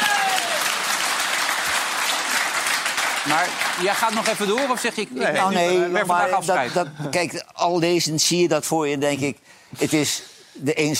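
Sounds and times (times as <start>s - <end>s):
audience applause: 0.0s - 5.5s
speech: 3.2s - 10.9s.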